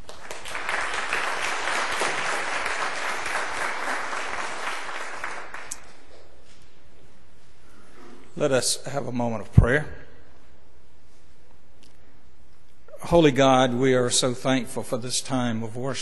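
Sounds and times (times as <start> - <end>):
congregation applauding at a worship service: 0.0 - 6.1
speech: 8.4 - 10.0, 13.1 - 15.9.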